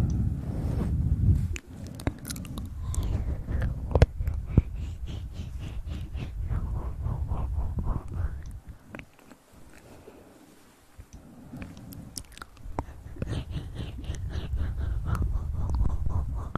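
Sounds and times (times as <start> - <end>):
ear massage trigger sounds: 0.0 - 16.5.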